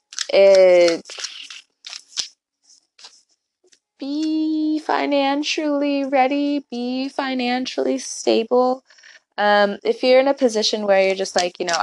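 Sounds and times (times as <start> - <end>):
deck of tarot cards being shuffled: 0.0 - 4.5, 11.2 - 11.8
speech: 0.3 - 1.2, 4.9 - 11.8.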